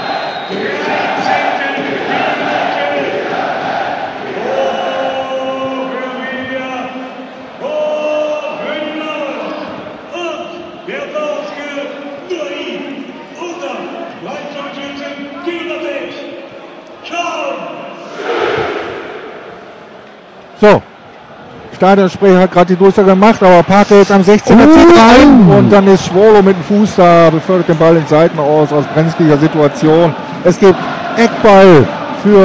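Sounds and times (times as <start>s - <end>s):
football fans in the south stand singing and chanting after a goal: 0.0s - 5.2s, 18.0s - 20.0s
speech: 20.6s - 20.9s, 21.8s - 32.4s.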